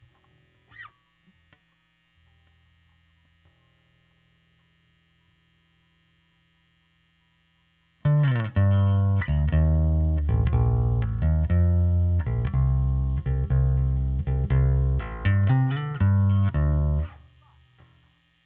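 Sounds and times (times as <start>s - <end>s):
overdriven bass: 8.0s - 17.9s.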